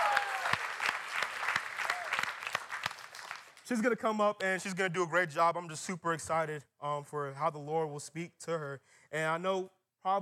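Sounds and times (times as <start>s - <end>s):
round of applause: 0.0s - 3.6s
speech: 3.7s - 10.2s.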